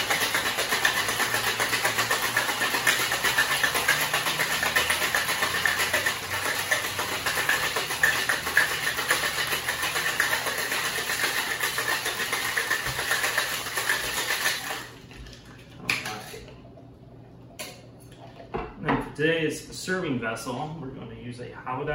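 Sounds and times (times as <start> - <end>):
ice rattling in a cocktail shaker: 0.0 - 15.0
speech: 19.2 - 21.9.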